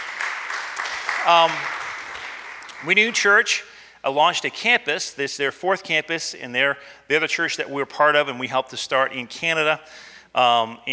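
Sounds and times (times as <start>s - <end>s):
audience clapping: 0.0s - 3.3s
speech: 1.2s - 1.8s, 2.8s - 10.9s.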